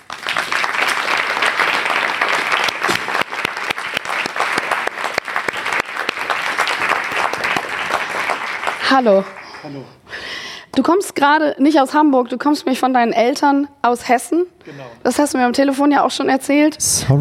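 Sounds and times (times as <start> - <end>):
audience applause: 0.0 - 10.0
speech: 8.9 - 10.0, 10.8 - 17.2.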